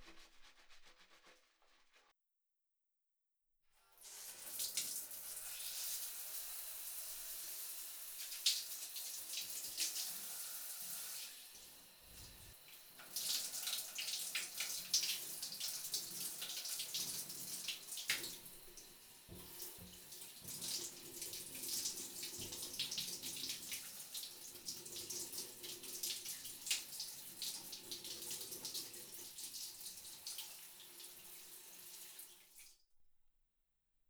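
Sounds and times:
tap water running to rinse off: 3.9 - 32.7.

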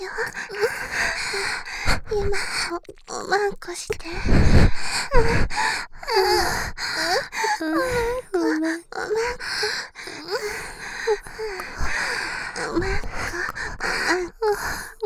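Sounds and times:
person panting: 0.3 - 2.6, 4.1 - 8.2, 9.2 - 14.8.

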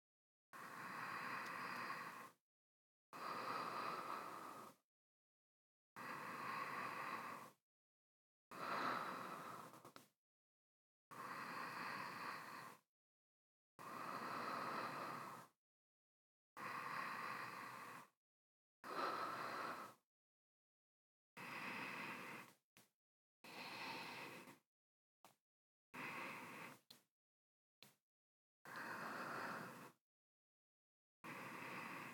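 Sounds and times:
person breathing in sleep: 0.6 - 2.4, 3.2 - 4.8, 6.0 - 7.6, 8.5 - 10.1, 11.1 - 12.8, 13.8 - 15.6, 16.6 - 18.2, 18.8 - 20.0, 21.4 - 22.6, 23.4 - 24.6, 26.0 - 27.0, 28.7 - 30.0, 31.2 - 32.1.

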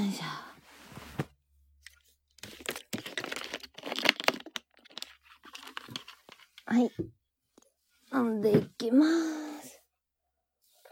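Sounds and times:
500 ml plastic water bottle crinkling and cracking while handled: 1.8 - 6.8
speech: 6.7 - 7.2, 8.1 - 9.4.

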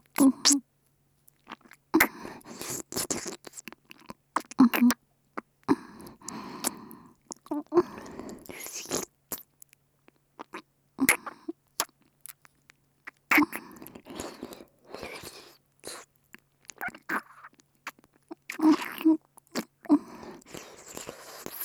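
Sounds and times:
melting ear licking sounds: 1.3 - 9.5, 13.1 - 21.6.

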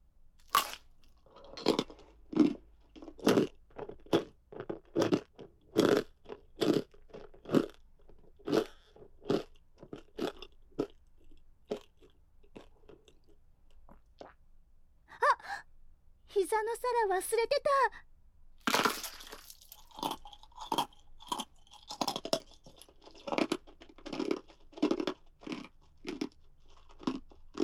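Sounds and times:
crunchy chewing and biting: 0.4 - 13.4, 18.6 - 27.6
speech: 16.6 - 18.1.

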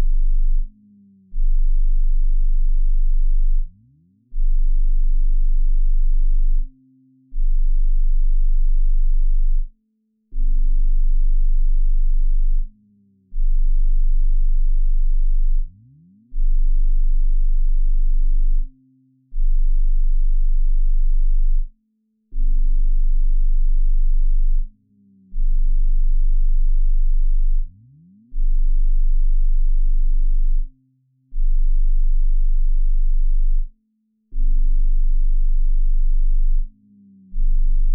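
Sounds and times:
25Hz to 30Hz low frequency tone: 0.0 - 9.7, 10.3 - 21.7, 22.3 - 33.7, 34.3 - 37.9.

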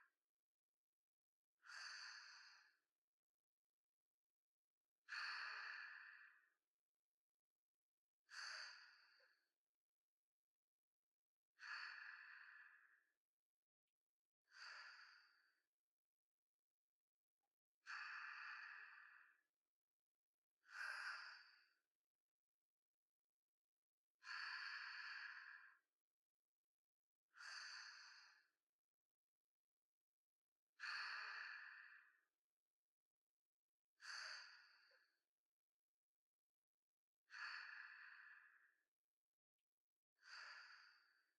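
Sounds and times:
sleep breathing ASMR: 1.6 - 2.8, 5.1 - 6.5, 11.6 - 13.1, 17.9 - 19.4, 20.7 - 21.8, 24.2 - 25.8, 27.4 - 28.5, 30.8 - 32.2, 34.0 - 35.1, 37.3 - 38.8, 40.2 - 41.3.

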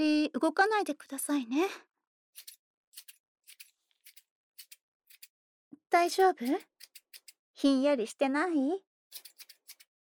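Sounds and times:
speech: 0.0 - 3.1, 5.9 - 6.7, 7.6 - 9.2
scissors snipping through hair close to the ear: 2.4 - 5.4, 6.0 - 7.4, 9.1 - 9.9.

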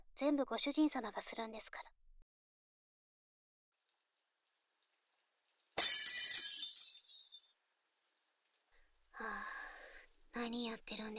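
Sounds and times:
speech: 0.2 - 2.0, 9.2 - 9.6, 10.3 - 11.1
ceramic plate smashing: 5.8 - 7.6
plate shards scattering and tinkling: 5.8 - 7.6.

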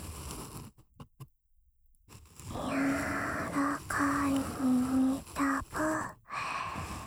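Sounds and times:
ear cleaning sounds in the left ear: 2.5 - 7.0.

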